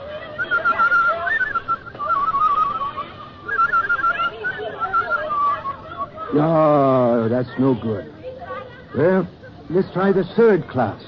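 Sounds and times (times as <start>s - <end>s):
person whistling a tune: 0.4s - 6.1s
speech: 6.4s - 8.1s, 9.0s - 11.0s.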